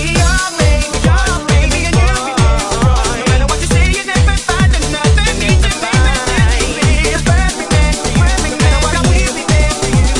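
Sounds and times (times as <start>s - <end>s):
organ mix: 0.2s - 10.1s.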